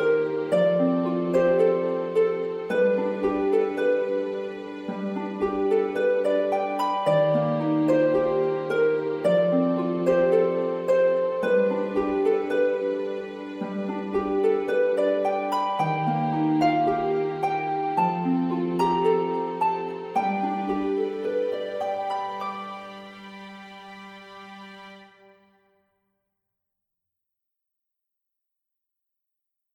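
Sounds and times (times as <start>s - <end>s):
healing music: 0.0s - 25.8s.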